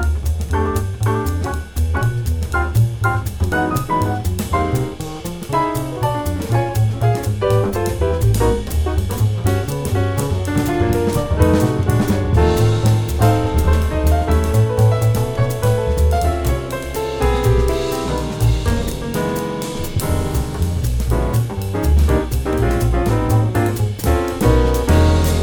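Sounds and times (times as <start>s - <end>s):
modern jazz piano play-along in Eb: 0.0s - 25.4s.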